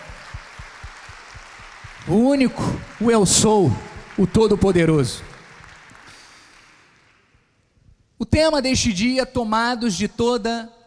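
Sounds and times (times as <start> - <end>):
low thumping beat: 0.0 - 2.9, 3.7 - 4.4
audience applauding: 0.0 - 7.3
speech: 2.0 - 5.3, 8.4 - 10.8.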